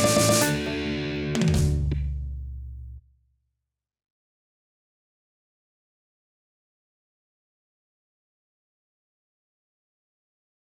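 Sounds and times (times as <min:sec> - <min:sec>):
banjo: 0:00.0 - 0:01.5.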